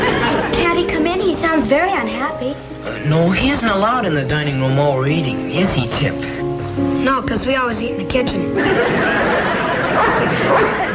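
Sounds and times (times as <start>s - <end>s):
laughter: 0.0s - 0.6s, 8.6s - 10.9s
speech: 1.6s - 10.9s
dog barking: 9.8s - 10.9s.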